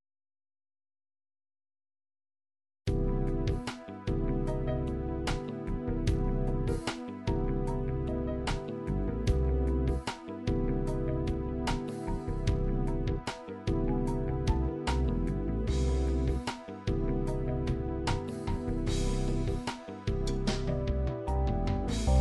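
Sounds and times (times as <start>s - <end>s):
funk fusion MIDI music: 2.9s - 22.1s.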